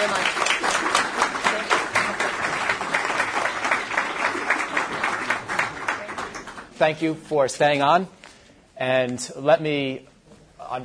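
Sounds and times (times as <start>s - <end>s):
audience applause: 0.0s - 6.8s
speech: 6.8s - 8.2s, 8.8s - 10.1s, 10.7s - 10.8s.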